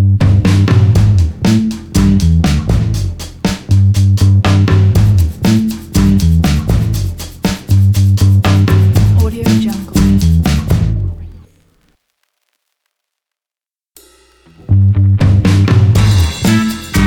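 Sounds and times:
retro funky logo jingle: 0.2 - 11.1, 14.3 - 17.0.

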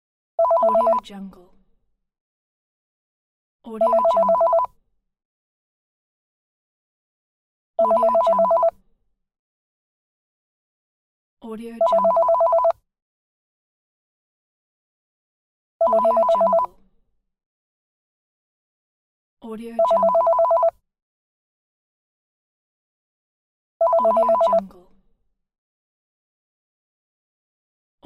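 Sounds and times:
telephone sounds: 0.4 - 1.0, 3.8 - 4.7, 7.8 - 8.7, 11.8 - 12.8, 15.8 - 16.7, 19.8 - 20.7, 23.8 - 24.6.

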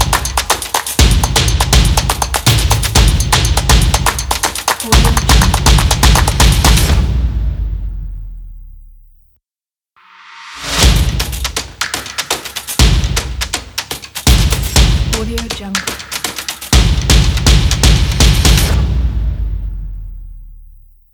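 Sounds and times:
stomp: 0.0 - 7.2, 10.8 - 19.0.

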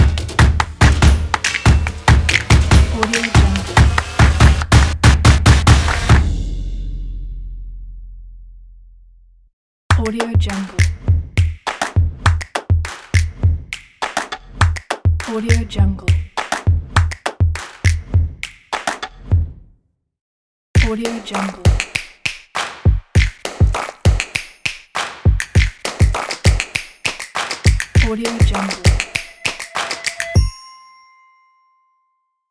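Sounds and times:
hands clapping in a logo jingle: 0.0 - 6.2, 9.9 - 19.2, 21.1 - 30.4.

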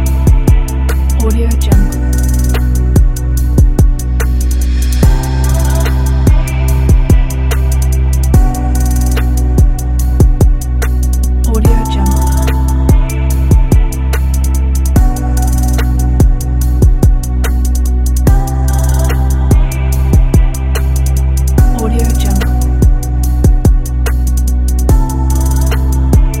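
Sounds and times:
dreamy electronic music: 0.0 - 26.3.

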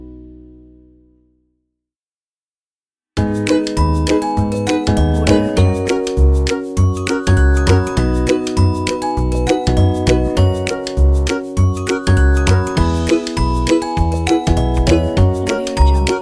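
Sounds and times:
ukulele: 3.2 - 16.2
happy kids' bells: 3.4 - 16.2.

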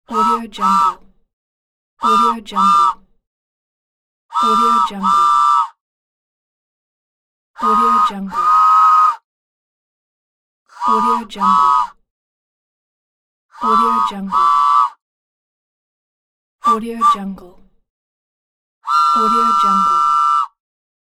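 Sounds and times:
toy train whistle: 0.1 - 1.0, 2.0 - 3.0, 4.3 - 5.8, 7.6 - 9.2, 10.8 - 12.0, 13.6 - 15.0, 16.6 - 17.2, 18.8 - 20.6.

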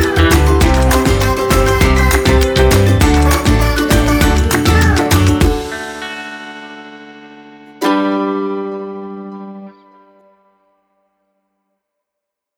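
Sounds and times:
children having fun: 0.0 - 6.0.

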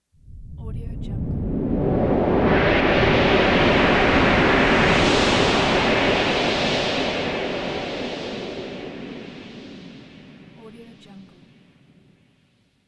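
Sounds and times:
sci-fi fly-by: 0.3 - 10.5.

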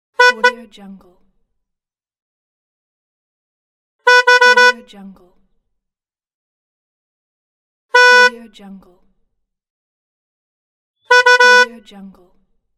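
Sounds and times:
car horn: 0.1 - 0.7, 4.0 - 4.9, 7.9 - 8.4, 11.1 - 11.8.

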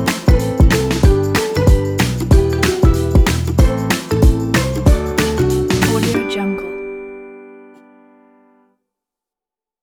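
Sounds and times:
happy comedy music for kids: 0.0 - 7.1.

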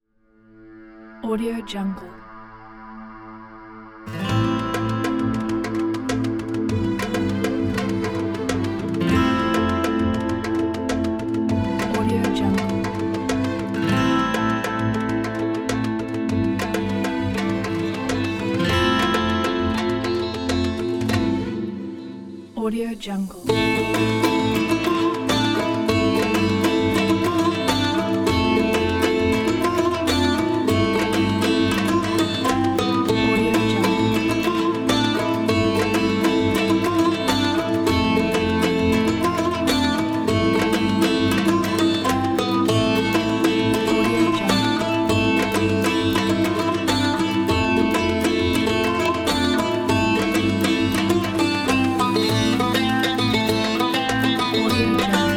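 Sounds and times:
Middle Eastern music: 0.5 - 55.3.

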